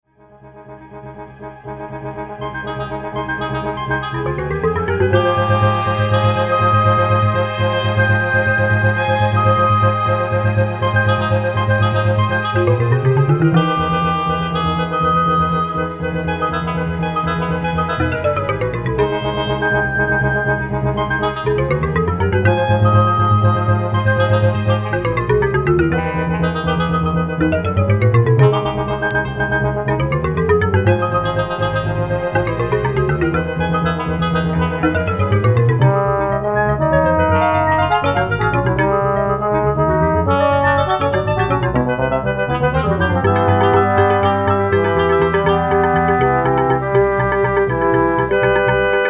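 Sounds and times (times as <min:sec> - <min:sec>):
orchestra: 0:00.7 - 0:49.0.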